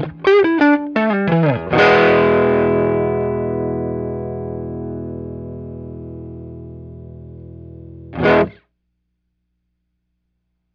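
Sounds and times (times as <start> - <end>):
distorted electric guitar on neck pickup: 0.0 - 8.6.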